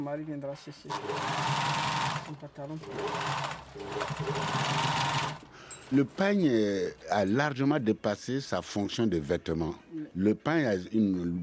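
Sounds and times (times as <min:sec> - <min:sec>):
speech: 0:00.0 - 0:11.4
sewing machine taking in a pair of trousers: 0:00.9 - 0:05.5.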